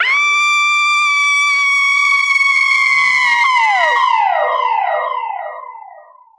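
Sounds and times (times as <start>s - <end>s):
long scream: 0.0s - 4.7s.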